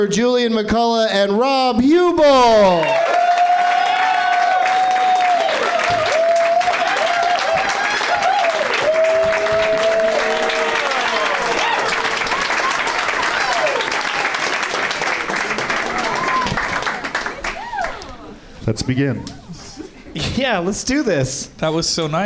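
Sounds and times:
speech: 0.0 - 3.2, 18.7 - 19.4, 20.2 - 22.2
large crowd applauding guests: 2.7 - 18.4.

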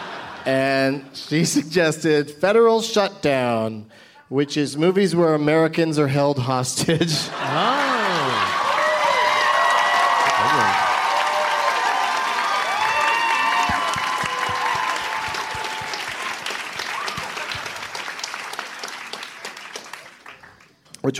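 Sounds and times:
speech: 0.4 - 7.8
laughter: 6.8 - 8.8
audience applause: 7.4 - 20.8.

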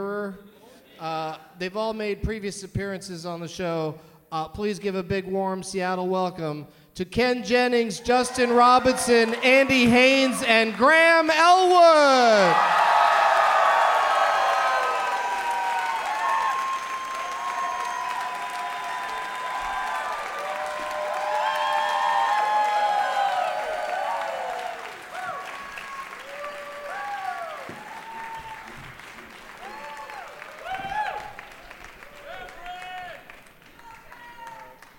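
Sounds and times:
speech: 0.3 - 12.8
crowd applauding: 8.1 - 34.9
whoops and shouted cheers: 11.8 - 28.8, 29.6 - 31.5, 33.8 - 34.8.

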